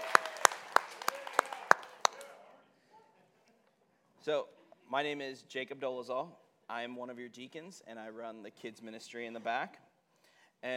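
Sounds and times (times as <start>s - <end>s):
audience applause: 0.0s - 2.4s
speech: 4.2s - 9.9s, 10.6s - 10.7s.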